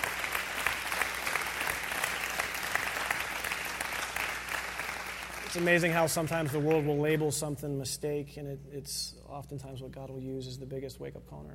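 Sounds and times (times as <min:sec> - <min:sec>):
audience applause: 0:00.0 - 0:07.1
speech: 0:05.5 - 0:11.5.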